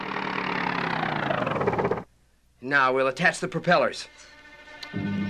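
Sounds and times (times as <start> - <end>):
small motor running: 0.0 - 2.1
speech: 2.6 - 5.1.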